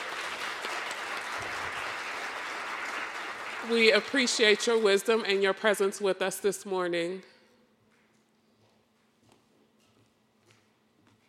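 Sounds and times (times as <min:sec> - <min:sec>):
audience applause: 0:00.0 - 0:05.0
speech: 0:03.6 - 0:07.3.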